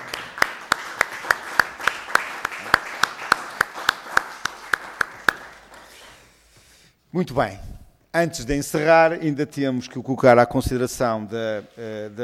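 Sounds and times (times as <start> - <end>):
hands clapping: 0.0 - 6.3
speech: 7.1 - 12.2.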